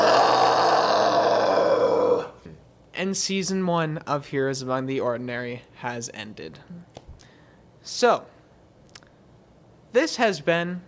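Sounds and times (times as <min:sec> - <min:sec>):
person screeching imitating a wyvern: 0:00.0 - 0:02.4
speech: 0:03.0 - 0:07.0, 0:07.9 - 0:08.3, 0:09.9 - 0:10.8.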